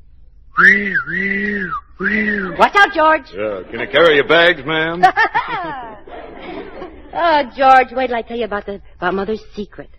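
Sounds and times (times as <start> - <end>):
steam whistle blowing: 0.6 - 2.6
speech: 0.6 - 6.0, 7.1 - 9.9
laughter: 2.3 - 7.6.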